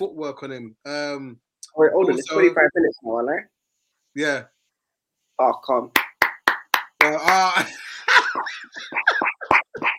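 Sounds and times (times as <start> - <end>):
speech: 0.0 - 3.6, 4.2 - 4.6, 5.4 - 6.0, 7.0 - 9.3
people clapping: 5.9 - 7.7.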